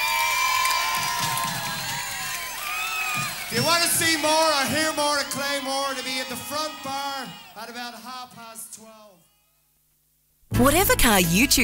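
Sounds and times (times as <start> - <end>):
audience applause: 0.0 - 9.0
speech: 3.5 - 9.2, 10.6 - 11.6.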